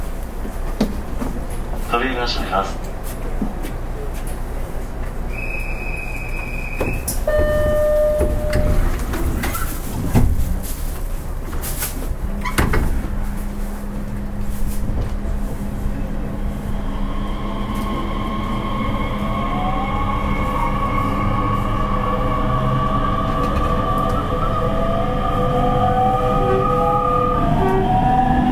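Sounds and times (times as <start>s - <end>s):
Nishitetsu 3000 series train rumbling: 0.0s - 28.5s
short whistling tones: 5.3s - 8.7s.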